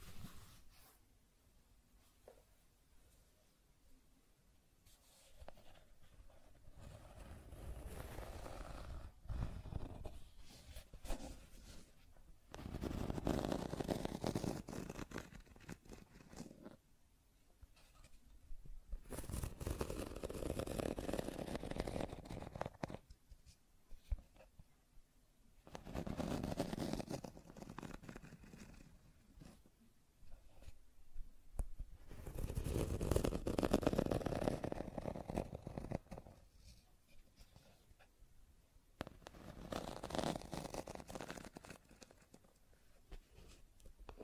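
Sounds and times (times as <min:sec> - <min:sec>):
scratching and tracing strokes: 0:04.9 - 0:16.8, 0:19.0 - 0:23.6, 0:25.7 - 0:29.7, 0:32.0 - 0:36.8, 0:39.0 - 0:42.5.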